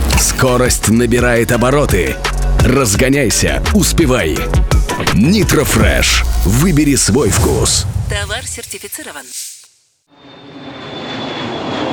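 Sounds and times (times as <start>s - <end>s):
speech: 0.2s - 9.5s
aircraft engine roaring as a plane climbs: 10.1s - 11.9s.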